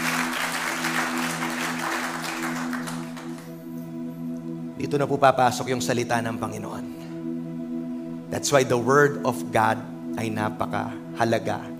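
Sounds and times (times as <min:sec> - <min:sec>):
church congregation clapping in praise of the Lord: 0:00.0 - 0:03.7
steady sustained musical tones: 0:00.0 - 0:11.7
speech: 0:04.9 - 0:07.0, 0:08.3 - 0:11.7.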